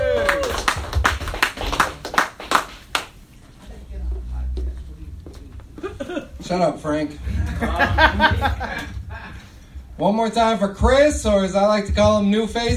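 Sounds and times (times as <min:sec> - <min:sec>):
audience clapping at a comedy show: 0:00.0 - 0:03.3
laughter: 0:05.8 - 0:06.4, 0:07.2 - 0:09.6
speech: 0:06.5 - 0:08.9, 0:10.0 - 0:12.7.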